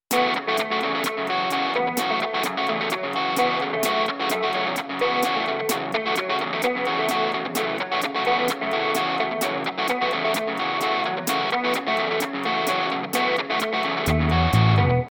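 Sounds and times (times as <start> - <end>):
polyphonic music mix: 0.1 - 15.1.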